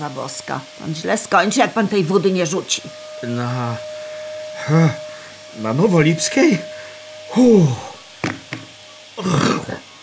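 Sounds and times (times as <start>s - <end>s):
speech: 0.0s - 4.0s, 4.6s - 5.0s, 5.6s - 7.9s, 9.2s - 9.9s
vacuum cleaner running: 0.0s - 10.0s.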